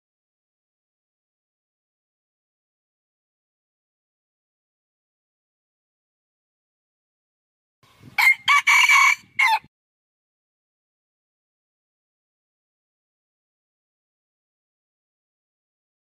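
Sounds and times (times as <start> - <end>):
red junglefowl crowing: 8.2 - 9.7.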